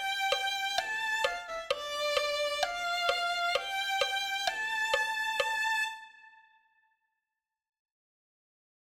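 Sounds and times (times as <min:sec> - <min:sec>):
violin: 0:00.0 - 0:06.9.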